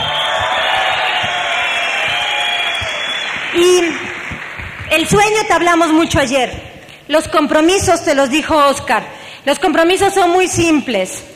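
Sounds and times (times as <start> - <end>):
audience applause: 0.0 - 5.1
speech: 5.0 - 11.3.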